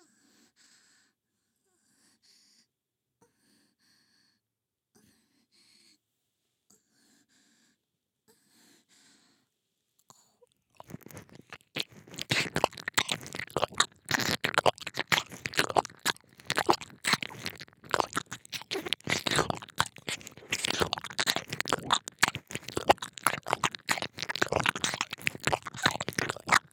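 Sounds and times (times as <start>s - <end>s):
ear licking on the left: 10.8s - 26.7s.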